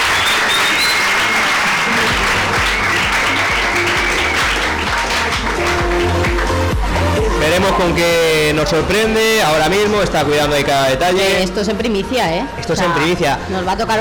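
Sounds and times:
audience applause: 0.0s - 8.0s
speech: 7.7s - 13.9s.

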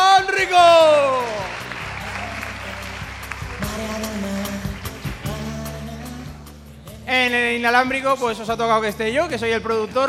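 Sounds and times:
applause: 0.0s - 5.6s
speech: 7.3s - 10.0s.

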